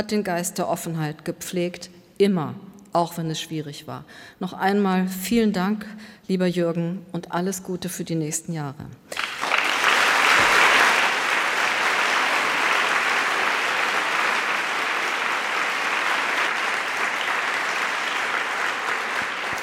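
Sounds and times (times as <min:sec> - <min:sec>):
speech: 0:00.0 - 0:09.2
audience applause: 0:09.1 - 0:19.6.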